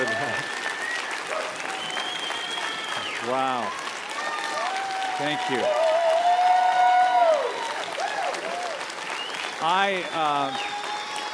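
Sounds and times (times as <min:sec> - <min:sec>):
audience applause: 0:00.0 - 0:11.3
speech: 0:03.2 - 0:03.8, 0:05.2 - 0:05.9, 0:09.6 - 0:10.8.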